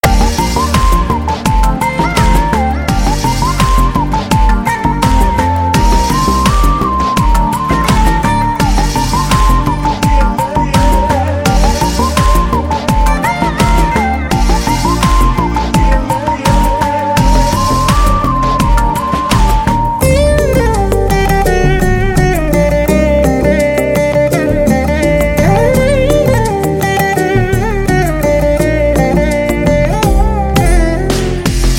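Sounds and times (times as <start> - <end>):
veena playing: 0.0 - 31.7.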